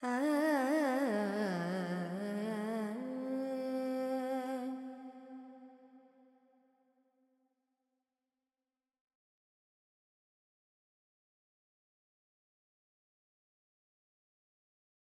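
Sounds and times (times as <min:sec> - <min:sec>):
Carnatic female alap in Purvi Kalyani: 0:00.0 - 0:05.1.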